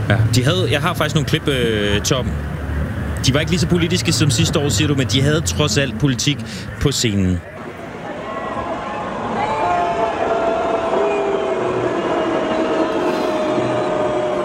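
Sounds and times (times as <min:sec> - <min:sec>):
speech: 0:00.1 - 0:02.6, 0:03.2 - 0:07.5
concert crowd roaring: 0:07.6 - 0:14.4
people yelling: 0:07.6 - 0:14.4.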